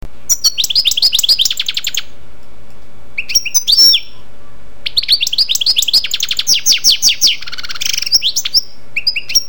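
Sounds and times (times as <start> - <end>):
European goldfinch singing: 0.3 - 2.1, 3.2 - 9.4.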